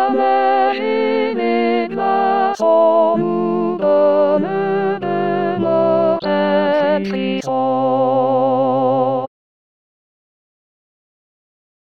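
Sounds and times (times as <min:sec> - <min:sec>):
soprano singing: 0:00.0 - 0:09.2.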